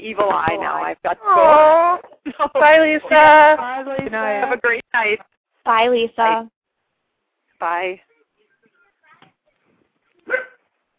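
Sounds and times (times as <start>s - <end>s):
speech: 0.0s - 6.6s, 7.6s - 8.1s
dog barking: 10.2s - 10.6s.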